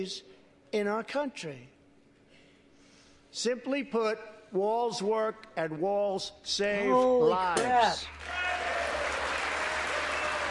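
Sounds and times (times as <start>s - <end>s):
speech: 0.0s - 1.8s, 3.3s - 8.4s
audience applause at a political speech: 8.1s - 10.4s.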